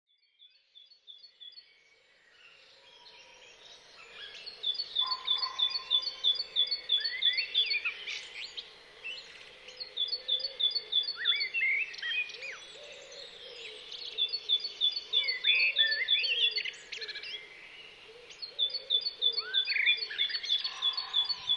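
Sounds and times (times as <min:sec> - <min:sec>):
great tit singing: 0:04.2 - 0:08.6, 0:09.7 - 0:21.5.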